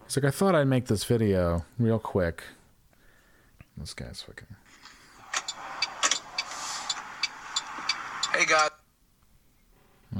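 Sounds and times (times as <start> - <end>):
speech: 0.1 - 2.6, 3.8 - 4.6, 8.4 - 8.8
car driving road hiss in a played video: 5.2 - 8.6.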